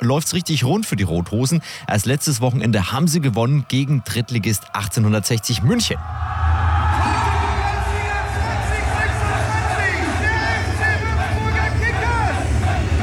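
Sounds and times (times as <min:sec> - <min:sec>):
speech: 0:00.0 - 0:06.6
football fans cheering: 0:03.1 - 0:13.0.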